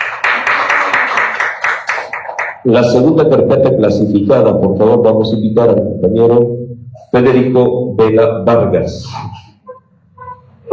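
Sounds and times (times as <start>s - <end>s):
applause for an architect at the judging of design proposals: 0.0s - 2.7s
speech: 2.6s - 9.4s.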